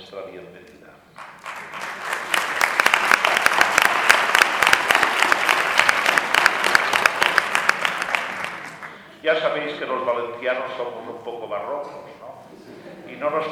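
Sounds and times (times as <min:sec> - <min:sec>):
speech: 0:00.1 - 0:01.8, 0:09.2 - 0:12.2, 0:13.2 - 0:13.5
audience applause at an inaugural ceremony: 0:01.2 - 0:09.1.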